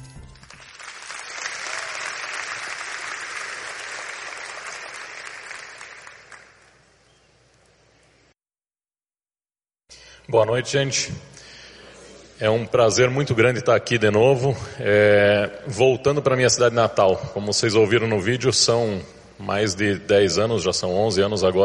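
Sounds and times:
audience applause: 0.4 - 6.8
speech: 10.3 - 11.4, 12.4 - 21.6.

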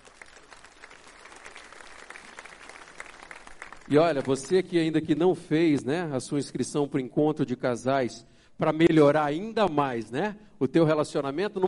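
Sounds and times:
audience applause: 0.0 - 4.6
speech: 3.9 - 11.6.

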